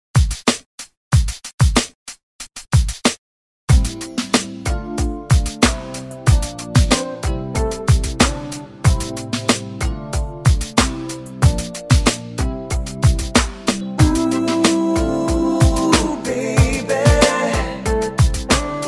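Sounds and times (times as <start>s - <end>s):
80s drum beat at 93 BPM: 0.1s - 18.8s.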